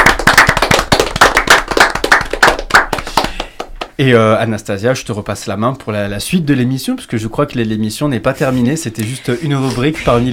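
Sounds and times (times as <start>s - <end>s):
audience applauding: 0.0s - 3.9s
speech: 4.0s - 10.3s.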